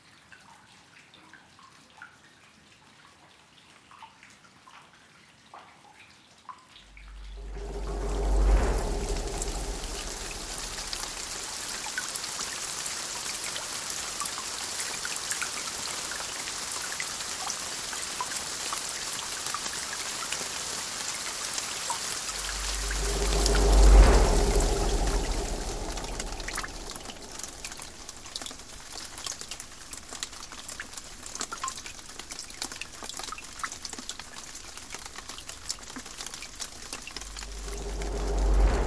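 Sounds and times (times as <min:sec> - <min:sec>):
rain: 0:00.0 - 0:38.8
thunder: 0:06.9 - 0:11.9, 0:21.9 - 0:30.4, 0:35.5 - 0:38.8.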